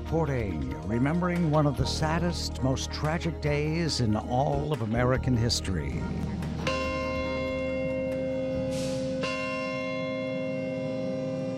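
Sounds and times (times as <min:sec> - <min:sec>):
speech: 0:00.1 - 0:06.7
bell tolling at the site of the World Trade Center: 0:06.0 - 0:11.5.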